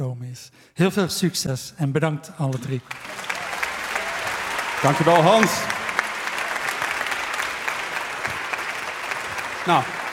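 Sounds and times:
speech: 0.1 - 3.4, 4.8 - 5.8, 9.6 - 10.0
audience applause: 2.8 - 10.1.

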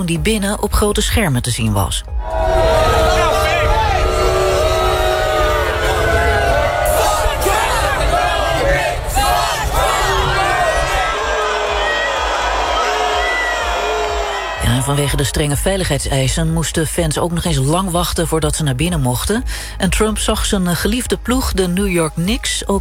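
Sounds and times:
speech: 0.0 - 3.0, 14.7 - 22.8
packed arena crowd booing and jeering: 2.1 - 15.9.

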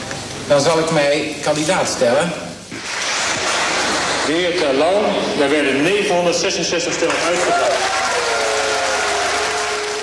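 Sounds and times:
speech: 0.5 - 2.5, 4.3 - 8.0
applause at a D66 party congress: 2.8 - 4.3, 7.0 - 10.0.

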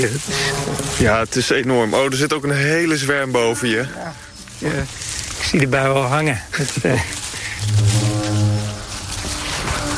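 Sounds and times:
speech: 0.0 - 7.9
low horn blast: 7.6 - 9.9.

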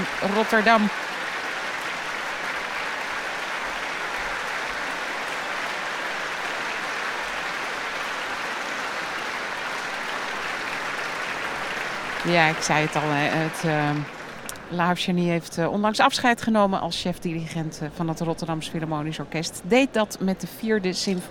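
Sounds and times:
orchestra concert applause in Rotterdam: 0.0 - 15.0
speech: 0.2 - 1.2, 12.2 - 21.2.

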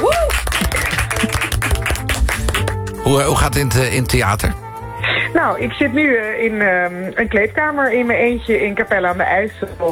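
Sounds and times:
audience applause: 0.0 - 3.2
speech: 3.1 - 4.6, 5.4 - 9.9.

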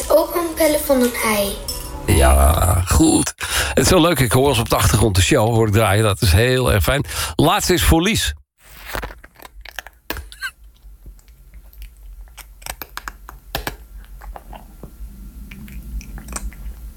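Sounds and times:
speech: 0.2 - 9.0
cat eating: 9.2 - 16.9.

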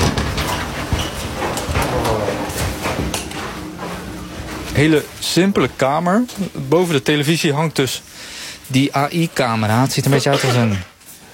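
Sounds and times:
footsteps in indoor corridor: 0.0 - 7.8
speech: 4.8 - 10.9.

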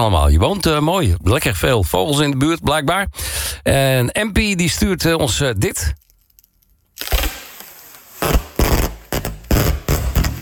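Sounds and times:
speech: 0.0 - 6.0
packing tape being unrolled: 6.0 - 10.3.

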